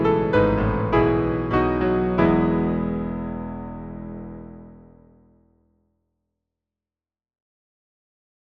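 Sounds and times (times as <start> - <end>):
hymn on piano: 0.0 - 5.1.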